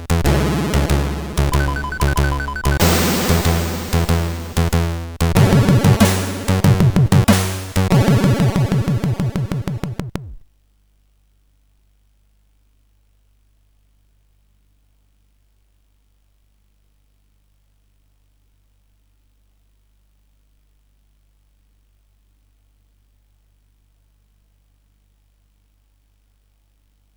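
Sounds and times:
chiptune intro on CSG8580R5 SID chip: 0.3s - 7.0s, 8.0s - 10.3s.

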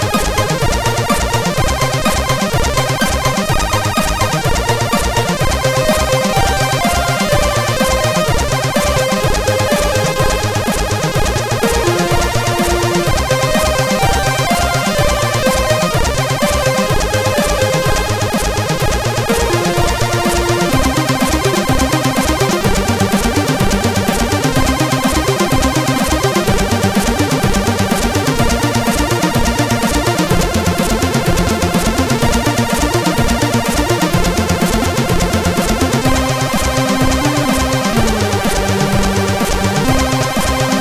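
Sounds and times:
drum machine beat on a SID CSG8580 chip: 0.0s - 40.7s.

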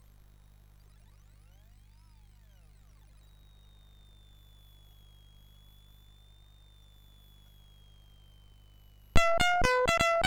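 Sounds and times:
MOS 6581R2 SID chip music: 9.2s - 10.2s.

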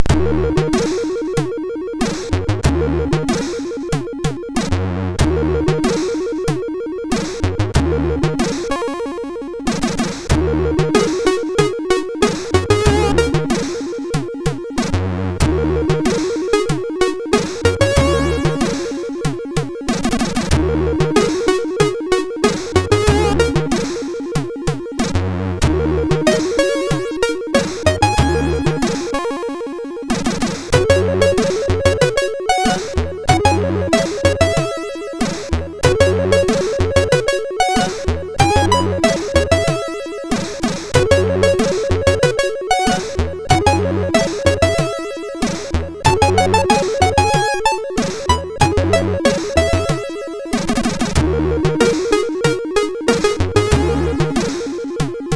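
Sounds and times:
slow funk on MOS6581R2 SID chip: 0.0s - 55.3s.

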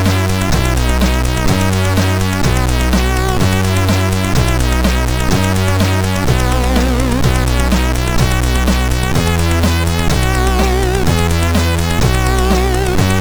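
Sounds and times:
MOS6581R4 SID chip synth sound: 0.0s - 13.1s.

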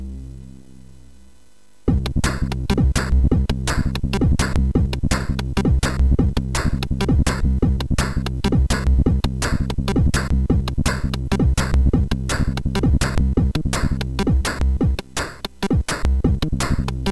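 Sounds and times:
MOS6581R4 SID chip break: 1.9s - 17.1s.

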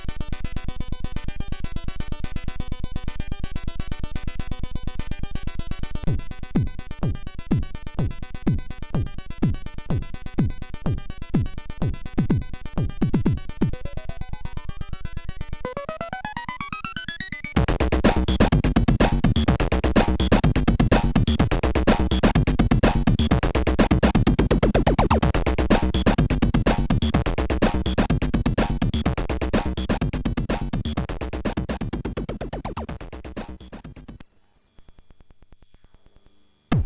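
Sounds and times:
chiptune rhythms on SID MOS6581R4 chip: 6.1s - 34.2s.

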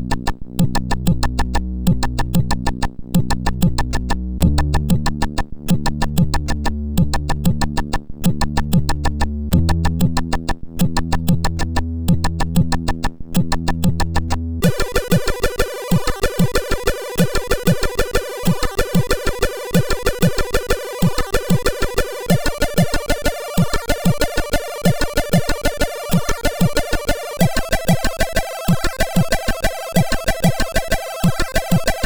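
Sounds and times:
bongo rhythm on a SID sound chip: 0.0s - 32.0s.

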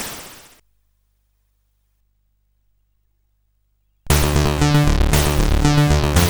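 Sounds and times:
party song on SID 8580R5 chip: 4.1s - 6.2s.

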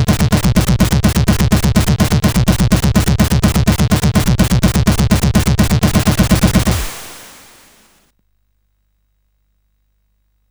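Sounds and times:
SID CSG8580 chiptune synthesizer: 0.1s - 7.9s.

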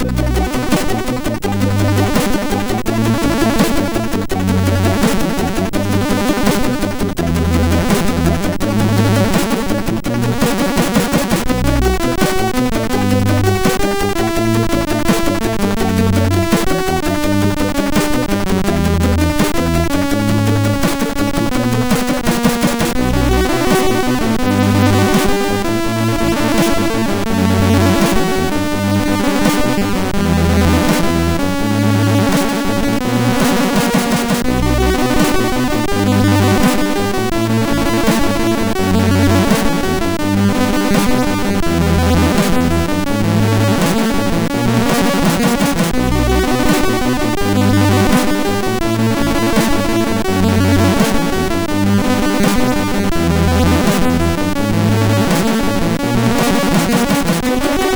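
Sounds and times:
intro tune on SID MOS6581R4 chip: 0.0s - 57.9s.

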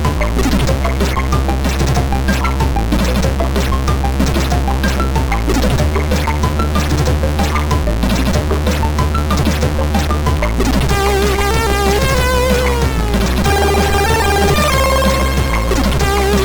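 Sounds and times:
chiptune melody on MOS6581R3 SID chip: 0.0s - 16.4s.

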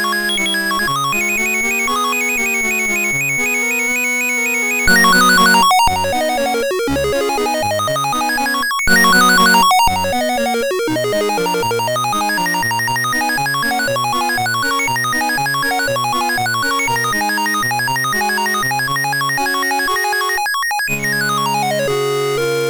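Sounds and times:
classical etude played on a MOS6581R2 sound chip: 0.0s - 22.6s.

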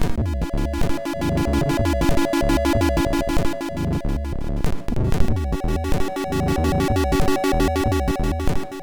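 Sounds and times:
MOS6581R2 chip synth mechanical waves: 0.2s - 8.8s.

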